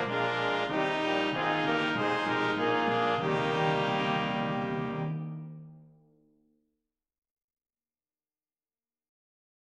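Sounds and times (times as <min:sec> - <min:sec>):
brass playing a hymn: 0:00.0 - 0:05.4.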